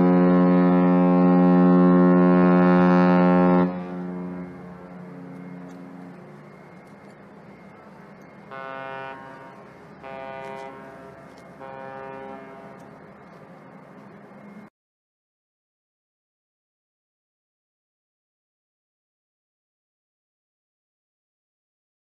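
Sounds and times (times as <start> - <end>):
liner horn: 0.0 - 6.8, 8.5 - 13.0.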